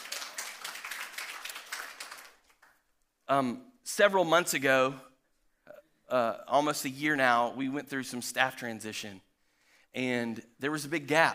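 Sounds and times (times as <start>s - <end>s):
audience clapping: 0.0s - 2.8s
speech: 3.3s - 5.1s, 6.1s - 9.3s, 9.9s - 11.3s.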